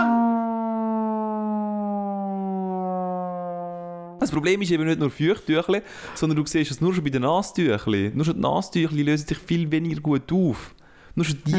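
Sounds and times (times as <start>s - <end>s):
alarm siren: 0.0s - 4.2s
speech: 4.2s - 11.5s.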